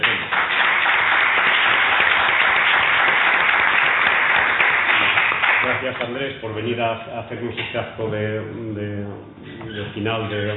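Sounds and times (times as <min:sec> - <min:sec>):
audience applause: 0:00.0 - 0:06.1
speech: 0:05.9 - 0:10.5.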